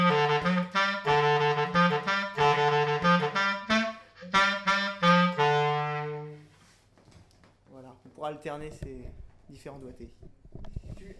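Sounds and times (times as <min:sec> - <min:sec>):
clarinet: 0:00.0 - 0:06.7.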